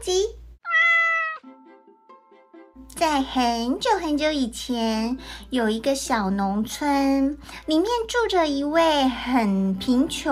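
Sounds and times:
cat meowing: 0:00.6 - 0:01.5
speech: 0:03.0 - 0:10.2.

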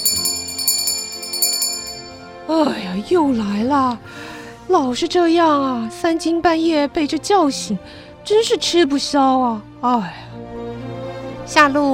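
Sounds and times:
small bell ringing softly: 0:00.0 - 0:02.4
speech: 0:02.5 - 0:10.2, 0:11.5 - 0:11.9.

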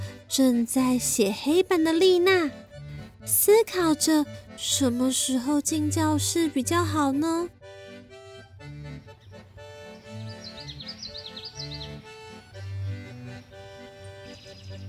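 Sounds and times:
music: 0:00.0 - 0:14.8
speech: 0:00.3 - 0:02.6, 0:03.2 - 0:07.8
small bird chirping: 0:09.0 - 0:14.8.

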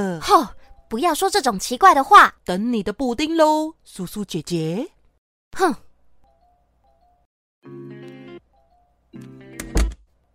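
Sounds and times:
speech: 0:00.0 - 0:05.9, 0:07.6 - 0:08.0
office door being closed: 0:09.2 - 0:10.0.

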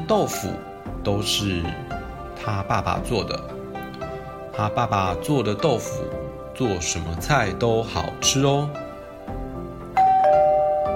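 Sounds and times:
speech: 0:00.1 - 0:03.6, 0:04.6 - 0:08.8
doorbell ringing: 0:10.0 - 0:10.9.

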